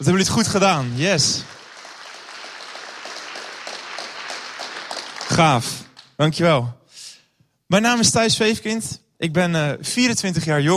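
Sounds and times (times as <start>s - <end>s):
speech: 0.0s - 1.5s, 5.4s - 6.8s, 7.7s - 10.7s
audience applause: 0.4s - 6.2s.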